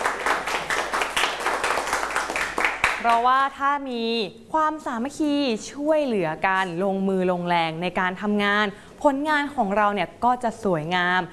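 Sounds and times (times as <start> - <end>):
small group of classmates clapping for a peer: 0.0 - 3.3
speech: 3.0 - 11.3.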